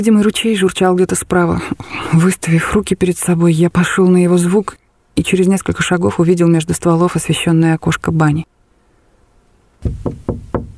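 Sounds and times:
speech: 0:00.0 - 0:08.6, 0:09.8 - 0:10.4
knocking on a wooden door: 0:09.8 - 0:10.7.

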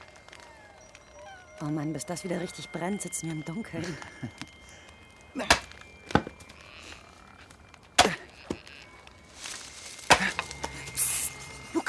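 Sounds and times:
speech: 0:01.6 - 0:04.5
axe chopping firewood: 0:05.4 - 0:06.3, 0:08.0 - 0:08.2, 0:10.1 - 0:10.4.

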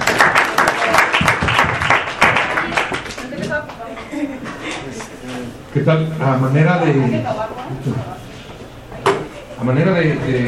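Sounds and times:
audience applause: 0:00.0 - 0:03.3
speech: 0:05.8 - 0:08.1, 0:09.6 - 0:10.4.

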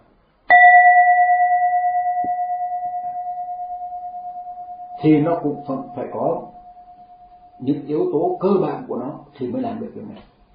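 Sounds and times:
bell struck by a Buddhist teacher: 0:00.5 - 0:08.3
speech: 0:05.0 - 0:06.6, 0:07.6 - 0:10.3.

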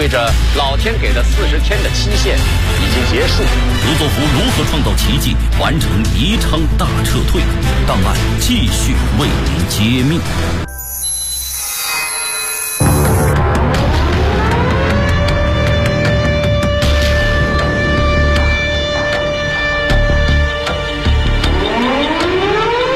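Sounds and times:
speech: 0:00.1 - 0:10.8
wartime air raid siren wailing: 0:12.8 - 0:22.9.

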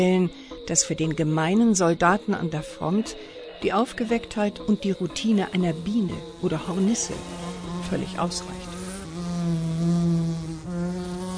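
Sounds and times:
speech: 0:00.0 - 0:08.7
housefly buzzing in flight: 0:05.6 - 0:11.3.

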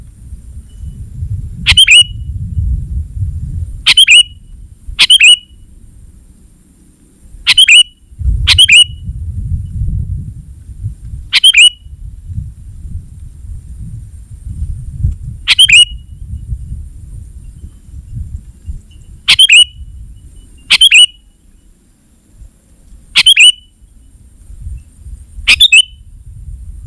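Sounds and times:
sooty-headed bulbul calls: 0:01.7 - 0:02.2, 0:03.9 - 0:04.4, 0:05.0 - 0:05.7, 0:07.4 - 0:09.0, 0:11.3 - 0:11.9, 0:15.4 - 0:16.1, 0:18.9 - 0:21.7, 0:23.1 - 0:23.9, 0:25.4 - 0:26.1.

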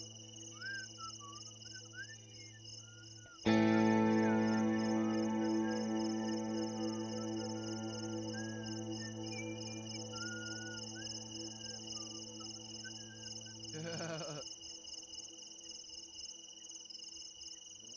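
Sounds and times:
crickets chirping: 0:00.0 - 0:17.9
sustained tonal hum: 0:03.5 - 0:13.8.

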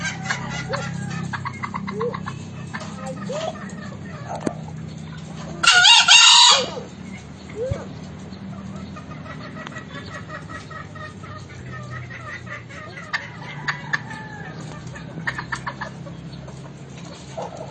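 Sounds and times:
green junglefowl clucking: 0:00.0 - 0:17.7.

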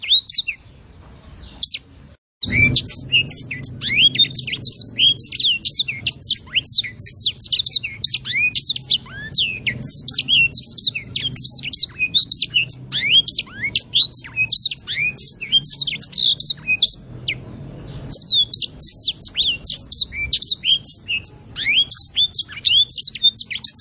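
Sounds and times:
songbird tutor song for training songbirds: 0:00.0 - 0:23.7.

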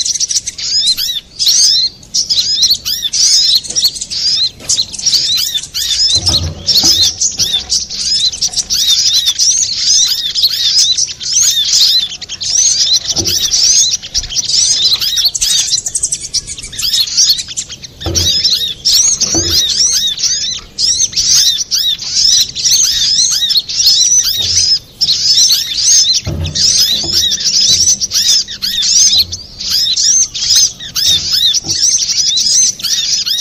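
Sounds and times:
Little spiderhunter singing: 0:00.0 - 0:33.3
faint low knocks: 0:03.1 - 0:09.9, 0:12.7 - 0:16.0, 0:16.9 - 0:20.5, 0:24.2 - 0:32.9.

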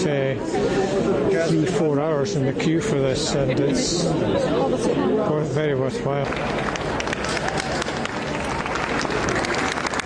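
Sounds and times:
speech: 0:00.0 - 0:06.9
faint murmuring voices: 0:00.0 - 0:10.0
crowd applauding: 0:06.1 - 0:10.0.

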